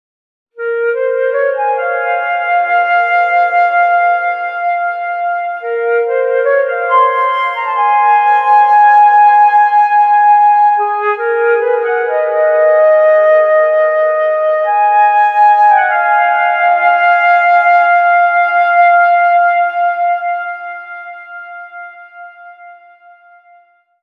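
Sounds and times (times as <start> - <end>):
flute: 0.6 - 24.0.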